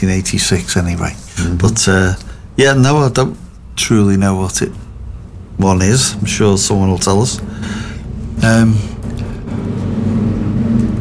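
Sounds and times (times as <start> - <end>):
speech: 0.0 - 4.8, 5.6 - 9.0
planes flying overhead: 7.3 - 10.9.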